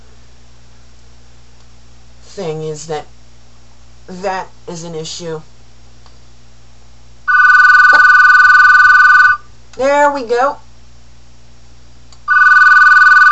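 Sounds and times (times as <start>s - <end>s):
speech: 2.4s - 3.1s, 4.1s - 5.5s, 9.8s - 10.6s
telephone ringing: 7.3s - 9.4s, 12.3s - 13.3s.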